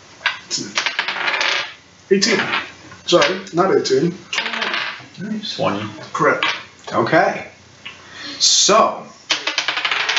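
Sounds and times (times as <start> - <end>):
speech: 0.5 - 0.9, 2.1 - 4.4, 5.2 - 7.5, 8.4 - 9.2
dice clattering across a hard surface: 0.8 - 1.8, 4.4 - 5.0, 9.3 - 10.1.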